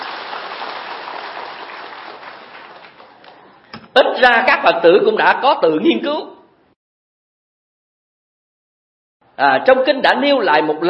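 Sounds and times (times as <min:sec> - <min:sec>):
crowd clapping: 0:00.0 - 0:03.5
speech: 0:04.2 - 0:06.3, 0:09.4 - 0:10.8.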